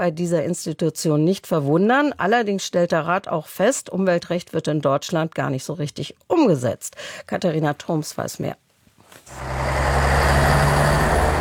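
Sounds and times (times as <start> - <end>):
speech: 0.0 - 8.6
traffic at a busy city intersection: 9.3 - 11.3.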